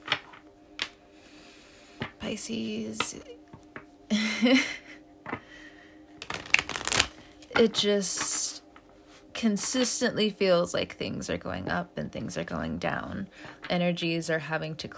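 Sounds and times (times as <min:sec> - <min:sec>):
tarot cards shuffling: 0:00.0 - 0:01.0, 0:06.2 - 0:08.9
speech: 0:02.3 - 0:03.4, 0:04.4 - 0:04.8, 0:07.6 - 0:08.5, 0:09.4 - 0:14.9.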